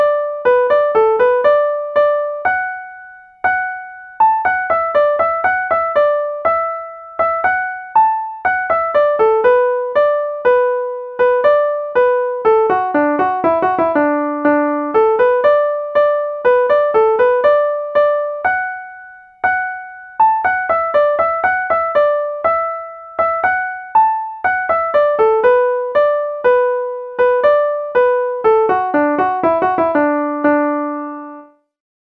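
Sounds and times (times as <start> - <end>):
slow piano: 0.0 - 31.6.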